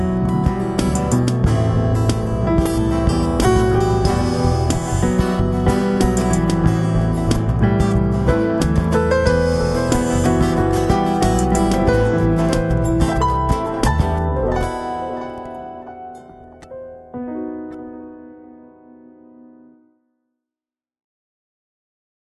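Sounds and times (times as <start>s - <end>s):
remorseful music: 0.0s - 16.9s.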